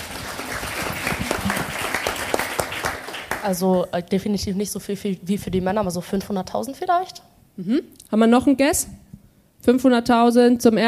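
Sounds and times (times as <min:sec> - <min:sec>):
audience applause: 0:00.0 - 0:03.7
speech: 0:03.4 - 0:09.0, 0:09.6 - 0:10.8.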